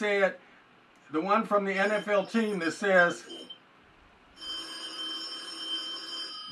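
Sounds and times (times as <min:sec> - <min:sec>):
speech: 0:00.0 - 0:00.5, 0:01.1 - 0:03.5
telephone ringing: 0:01.8 - 0:03.6, 0:04.4 - 0:06.5.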